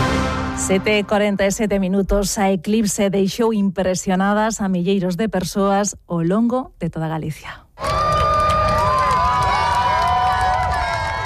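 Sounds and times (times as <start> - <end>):
speech: 0.7 - 8.2
crowd applauding during solar eclipse: 7.8 - 11.2.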